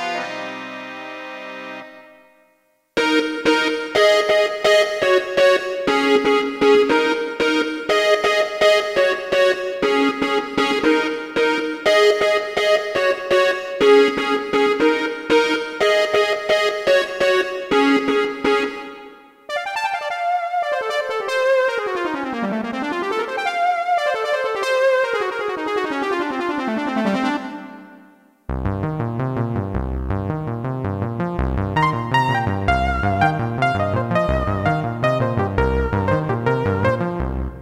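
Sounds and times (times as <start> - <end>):
synth lead organ on a Roland EM-10: 0.0 - 2.4, 3.0 - 37.5.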